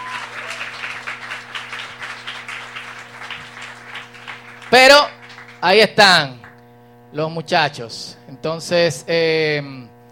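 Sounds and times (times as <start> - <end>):
audience applause: 0.0 - 5.6
speech: 5.6 - 6.4, 7.1 - 9.9.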